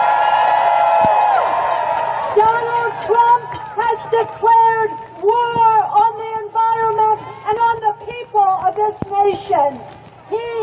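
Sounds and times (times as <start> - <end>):
crowd cheering and whooping: 0.0 - 3.8
speech: 2.4 - 6.3, 7.2 - 10.6.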